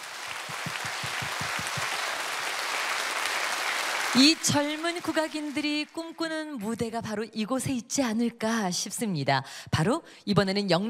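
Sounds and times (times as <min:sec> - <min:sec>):
audience applause: 0:00.0 - 0:06.0
speech: 0:04.2 - 0:10.8.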